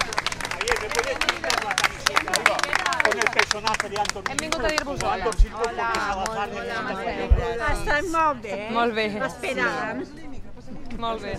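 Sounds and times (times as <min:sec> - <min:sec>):
crowd clapping outside: 0:00.0 - 0:06.8
excited shouting and cheering voices: 0:00.0 - 0:11.3
speech: 0:03.6 - 0:10.3, 0:11.0 - 0:11.3.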